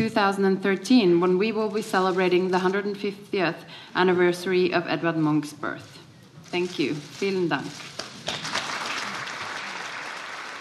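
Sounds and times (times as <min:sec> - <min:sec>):
speech: 0:00.0 - 0:08.0
audience applause for the crown princess in Frankfurt: 0:08.0 - 0:10.5.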